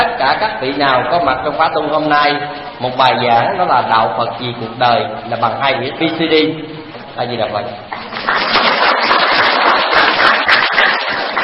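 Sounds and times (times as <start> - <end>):
speech: 0.2 - 8.6
audience applause: 7.9 - 11.4.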